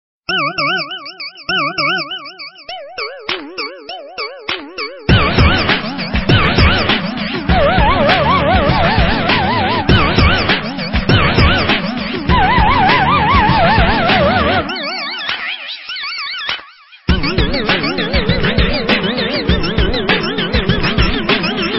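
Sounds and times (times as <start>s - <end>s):
ringtone remix: 0.3s - 21.7s.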